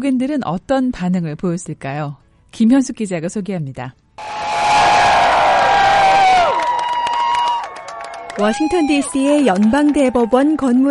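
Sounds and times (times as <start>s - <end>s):
speech: 0.0s - 4.3s, 8.4s - 10.9s
crowd cheering outside courthouse: 4.2s - 10.9s.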